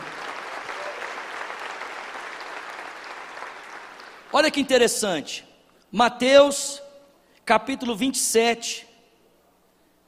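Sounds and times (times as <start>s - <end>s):
audience applauding: 0.0s - 4.4s
speech: 4.3s - 6.8s, 7.5s - 8.9s.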